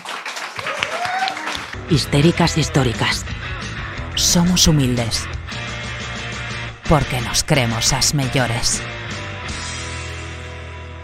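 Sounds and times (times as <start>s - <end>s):
audience applause: 0.0s - 2.9s
speech: 1.9s - 3.6s, 4.2s - 5.4s, 6.9s - 9.0s.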